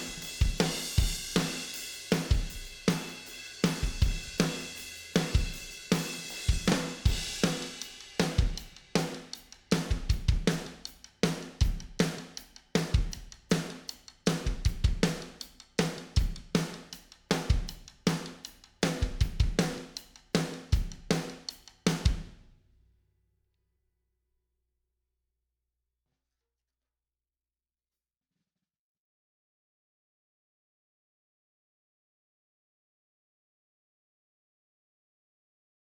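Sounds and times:
drums: 0.0s - 22.6s.

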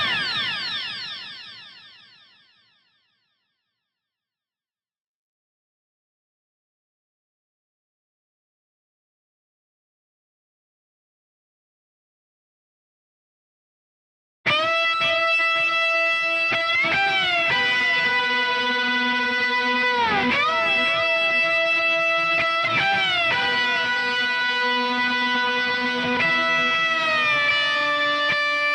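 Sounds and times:
bass guitar: 14.5s - 28.7s.

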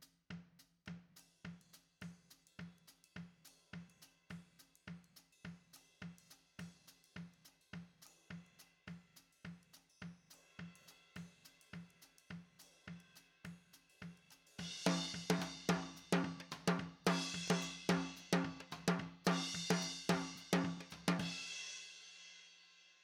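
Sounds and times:
snare drum: 4.9s - 22.0s.

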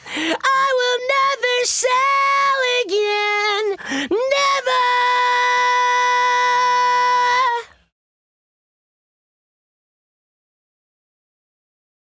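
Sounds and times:
lead vocals: 0.0s - 7.8s.

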